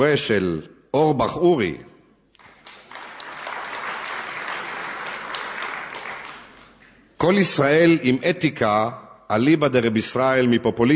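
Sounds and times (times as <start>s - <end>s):
speech: 0.0s - 1.9s, 7.2s - 10.9s
audience applause: 2.4s - 6.9s.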